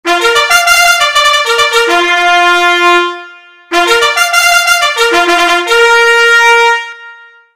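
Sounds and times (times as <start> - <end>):
bugle call: 0.1 - 7.2.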